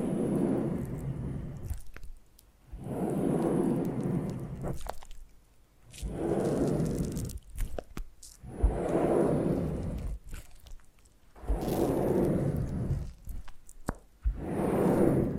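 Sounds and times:
foam being massaged: 0.7 - 15.3
clicks and crackles: 1.6 - 2.6, 3.8 - 8.4, 10.0 - 14.2.

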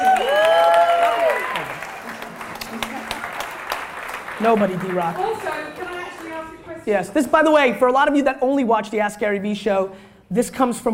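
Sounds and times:
audience applause: 0.0 - 6.6
speech: 4.4 - 5.8, 6.8 - 10.9.

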